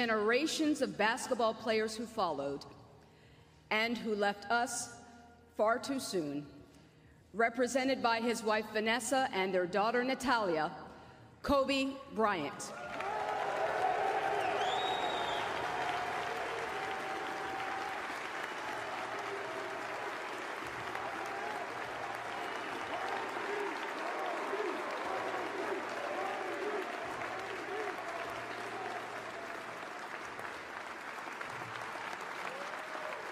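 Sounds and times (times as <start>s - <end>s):
speech: 0.0s - 2.8s, 3.7s - 5.0s, 5.6s - 6.6s, 7.3s - 10.8s, 11.4s - 12.8s
scattered audience cheers and whistles: 12.8s - 30.2s, 32.3s - 33.2s
audience applause: 12.8s - 33.2s.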